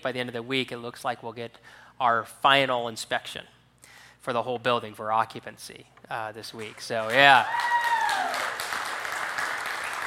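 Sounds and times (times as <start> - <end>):
speech: 0.0 - 3.6, 4.2 - 7.8
audience clapping: 6.6 - 10.0.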